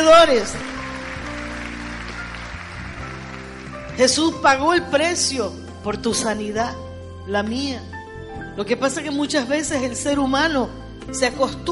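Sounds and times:
speech: 0.0 - 0.7, 4.0 - 8.0, 8.6 - 11.7
audience applauding: 0.2 - 4.1.

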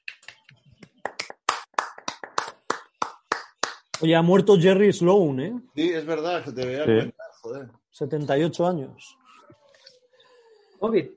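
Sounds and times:
people clapping: 0.0 - 4.3
speech: 4.0 - 9.2, 10.8 - 11.1.

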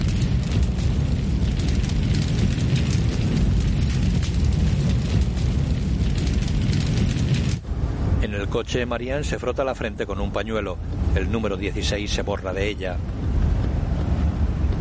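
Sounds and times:
gasoline fire roaring and crackling: 0.0 - 14.8
speech: 8.5 - 13.2.

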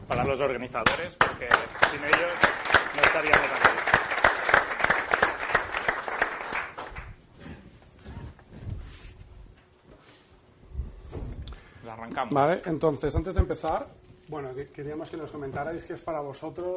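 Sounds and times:
speech: 0.1 - 4.2, 12.0 - 16.7
audience applause: 1.2 - 7.2.

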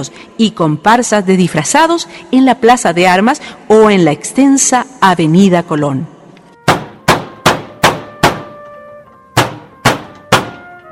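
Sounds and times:
speech: 0.0 - 6.1
knocking on a door: 6.7 - 8.6, 9.4 - 10.6.

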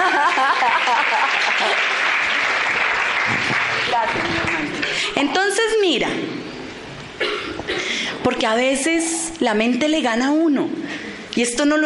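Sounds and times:
laughter: 0.0 - 2.5
audience applause: 0.0 - 5.1
speech: 5.1 - 6.5, 7.2 - 11.8.

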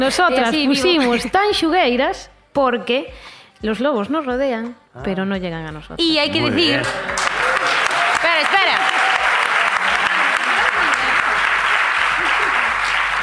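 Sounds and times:
speech: 0.0 - 7.2
loud sustained applause from a large crowd: 6.3 - 13.2
raised voices and cheers: 6.3 - 13.2
laughter: 9.6 - 13.2.

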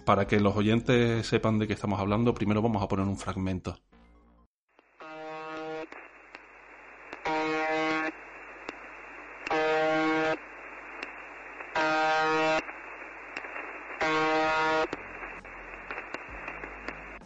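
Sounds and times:
speech: 0.1 - 3.9
harsh buzzing tone from a shortwave radio station: 4.8 - 17.2.

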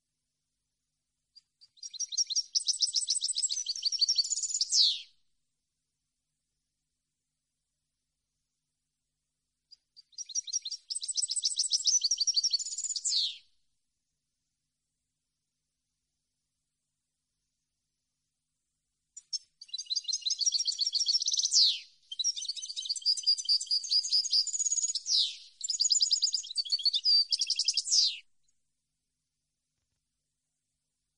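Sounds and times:
European goldfinch twittering song: 1.4 - 5.1, 9.7 - 13.5, 19.2 - 28.3.

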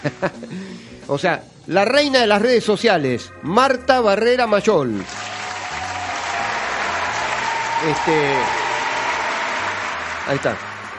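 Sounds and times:
laughter: 0.0 - 0.6
speech: 0.0 - 5.3, 7.8 - 8.6, 10.3 - 10.7
audience applause at a live show: 5.0 - 10.9.

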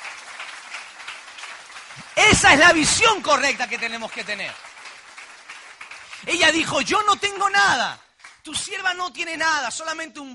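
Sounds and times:
audience applauding: 0.0 - 8.5
speech: 2.3 - 4.7, 6.3 - 10.3.

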